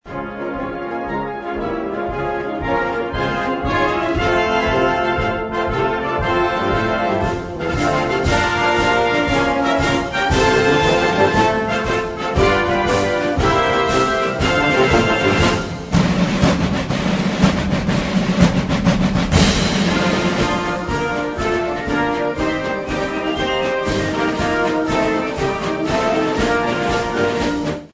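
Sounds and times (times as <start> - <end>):
US Army military march: 0.1 - 27.9.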